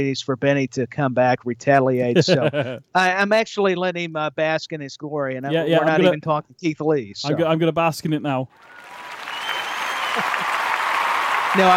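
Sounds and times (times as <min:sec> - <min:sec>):
speech: 0:00.0 - 0:09.1, 0:11.6 - 0:11.7
laughter: 0:02.2 - 0:02.8, 0:05.5 - 0:06.2, 0:10.0 - 0:10.7
applause: 0:08.6 - 0:11.7
crowd cheering: 0:08.6 - 0:11.7.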